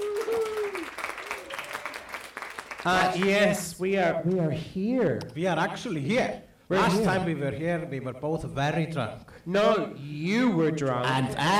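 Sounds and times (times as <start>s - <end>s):
audience applause: 0.0s - 3.5s
speech: 2.8s - 11.5s.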